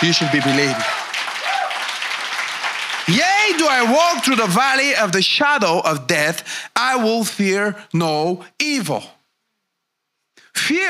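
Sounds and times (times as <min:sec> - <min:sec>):
speech: 0:00.0 - 0:01.0, 0:03.1 - 0:09.2, 0:10.6 - 0:10.8
audience applause: 0:00.0 - 0:04.5.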